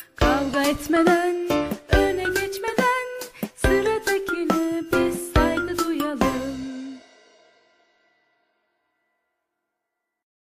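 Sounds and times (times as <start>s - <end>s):
educational song for preschool education: 0.0s - 7.2s.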